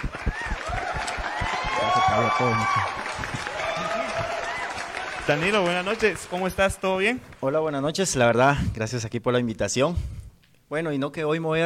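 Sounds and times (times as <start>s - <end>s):
audience applause: 0.0s - 7.4s
speech: 2.1s - 3.3s, 5.3s - 11.6s.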